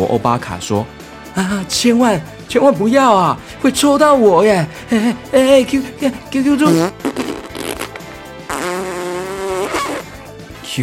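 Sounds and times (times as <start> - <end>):
speech: 0.0 - 7.2
fart sound effect: 6.6 - 10.2.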